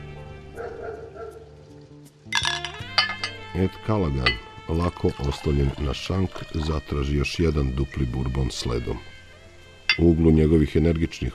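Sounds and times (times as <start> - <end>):
dog barking in the northwest Bronx: 0.6 - 1.5
glass clinking: 2.3 - 3.5, 4.2 - 5.8, 9.9 - 10.2
speech: 3.6 - 9.1, 10.0 - 11.3.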